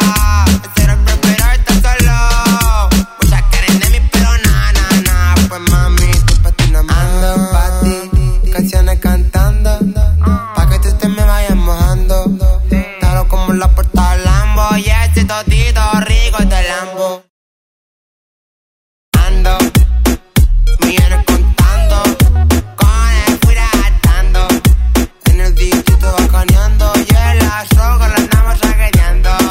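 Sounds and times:
Latin urban music: 0:00.0 - 0:17.3, 0:19.1 - 0:29.5.

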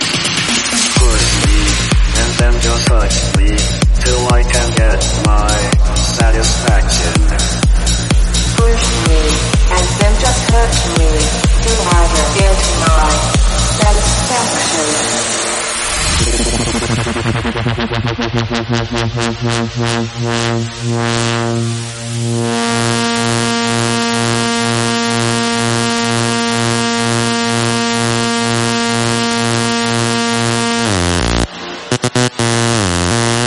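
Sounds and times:
electronic dance music remix ending: 0:00.0 - 0:33.4.

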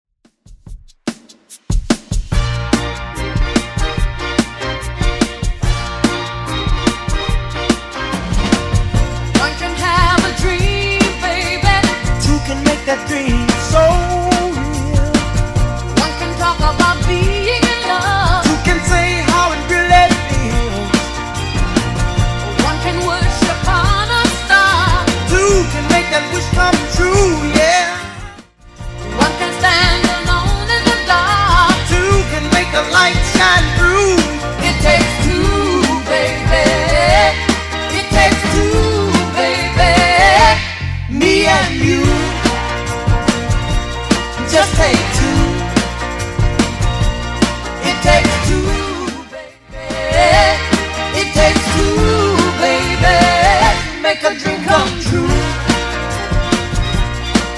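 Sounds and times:
60s style music at 145 bpm: 0:01.1 - 0:57.5.

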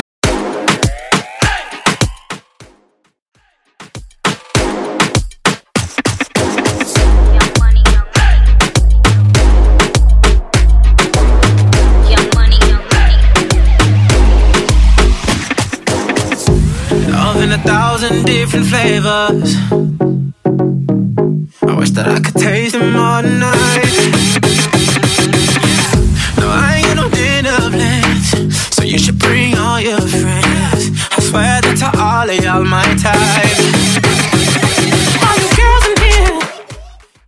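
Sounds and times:
dancehall remix music at 101 BPM: 0:00.2 - 0:37.2.

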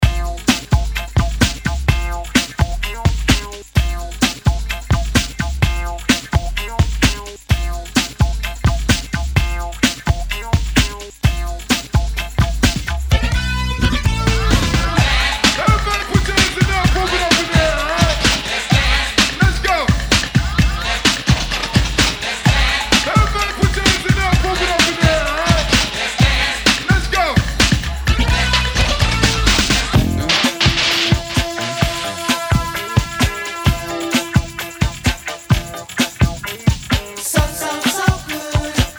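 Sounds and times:
70s hype music at 128 BPM: 0:00.0 - 0:38.9.

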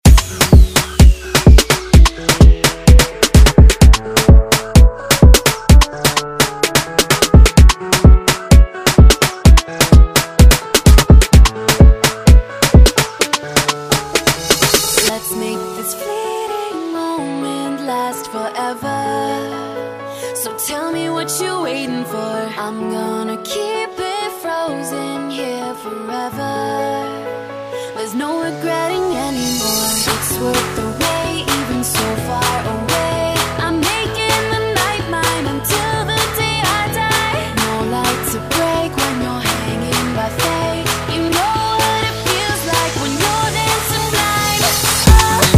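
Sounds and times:
afrobeat music: 0:00.0 - 0:15.1, 0:29.2 - 0:45.5.

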